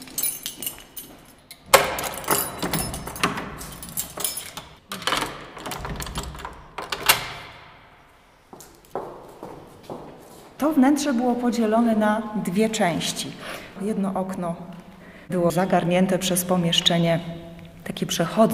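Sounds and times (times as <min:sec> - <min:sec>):
bunch of keys rattling while searching for the right one: 0:00.0 - 0:07.2
speech: 0:10.6 - 0:14.7, 0:15.3 - 0:18.5.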